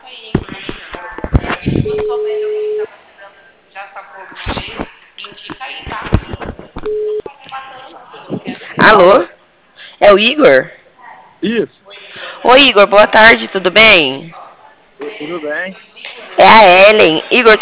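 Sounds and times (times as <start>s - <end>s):
telephone ringback tones while placing a call: 1.8s - 2.9s, 6.8s - 7.3s
speech: 2.1s - 2.5s, 8.8s - 9.3s, 10.0s - 10.8s, 11.4s - 11.8s, 12.4s - 14.4s, 15.2s - 17.6s.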